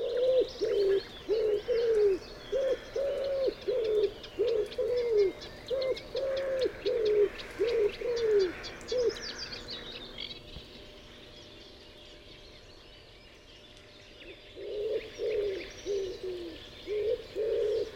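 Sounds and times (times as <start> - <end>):
common wood pigeon Columba palumbus cooing: 0.0 - 9.2, 14.6 - 17.9.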